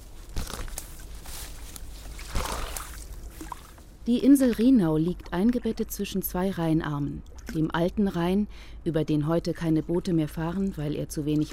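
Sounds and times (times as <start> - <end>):
paper map rustling and crinkling: 0.0 - 3.9
speech: 4.1 - 11.5.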